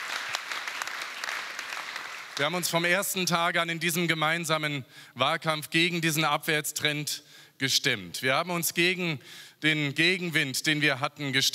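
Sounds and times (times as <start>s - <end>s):
crowd applause: 0.0s - 2.6s
speech: 2.4s - 11.5s.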